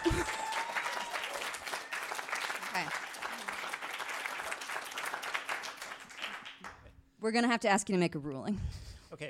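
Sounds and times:
crowd applause: 0.0 - 6.8
speech: 7.2 - 9.2.

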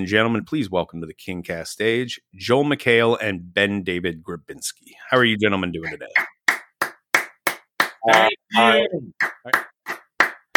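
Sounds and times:
speech: 0.0 - 6.4, 8.0 - 9.7
single person clapping: 5.9 - 10.5.

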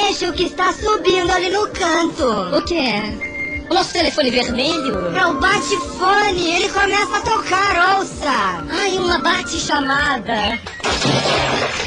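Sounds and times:
speech: 0.1 - 11.8
crash of someone falling onto a cuckoo clock, shattering and clattering: 10.7 - 11.8.

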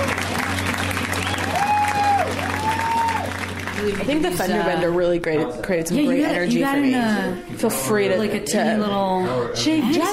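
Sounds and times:
audience applause and cheering for a comedian: 0.0 - 4.7
speech: 4.1 - 10.1.

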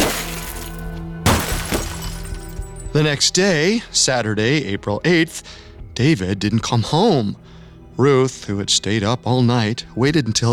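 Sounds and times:
car windows being smashed, glass shattering: 0.0 - 2.8
speech: 3.0 - 10.5.

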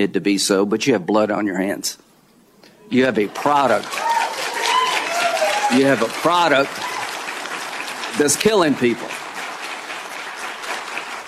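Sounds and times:
speech: 0.0 - 2.1, 2.9 - 4.1, 5.7 - 6.9, 8.2 - 9.2
people applauding: 3.0 - 11.2.

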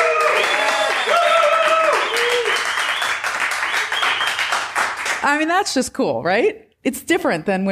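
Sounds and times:
live studio audience whooping and cheering: 0.0 - 4.7
live studio audience clapping at the Dairy Block inside the Milk Market: 0.0 - 5.5
speech: 5.3 - 7.6.

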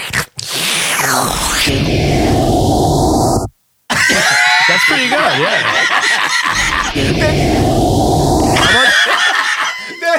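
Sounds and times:
vacuum sucking sound effect: 0.4 - 3.5, 6.5 - 9.0
laughter: 3.9 - 7.0, 8.6 - 10.1.

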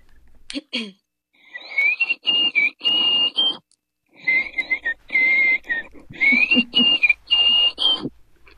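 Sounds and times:
person whistling a theme song: 1.4 - 3.6, 4.2 - 8.1.

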